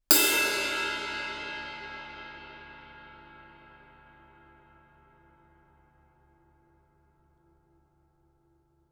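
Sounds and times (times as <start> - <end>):
suspended cymbal crash struck with stick fortissimo: 0.1 - 4.9.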